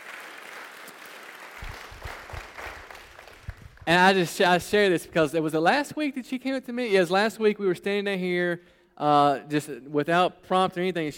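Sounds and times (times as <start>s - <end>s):
audience applause welcoming a speaker: 0.0s - 3.8s
speech: 3.9s - 11.1s.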